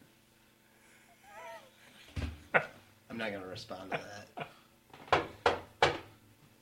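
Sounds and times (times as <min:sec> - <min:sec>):
speech: 0:03.2 - 0:04.5
insistent knocking on a door: 0:05.1 - 0:06.1.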